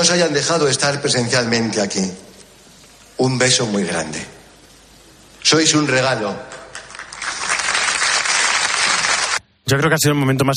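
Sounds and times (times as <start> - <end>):
speech: 0.0 - 2.3, 3.2 - 4.4, 5.4 - 6.6, 9.7 - 10.5
audience applause: 6.5 - 9.4.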